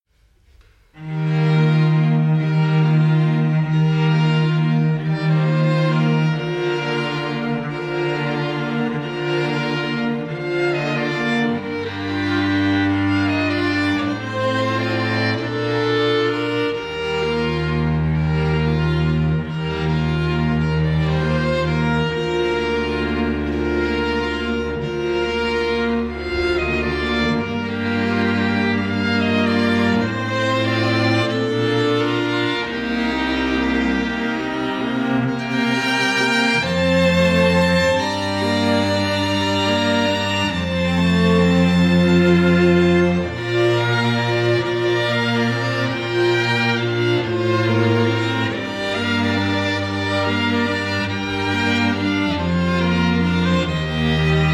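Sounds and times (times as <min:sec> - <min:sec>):
string quartet: 0:00.0 - 0:54.5.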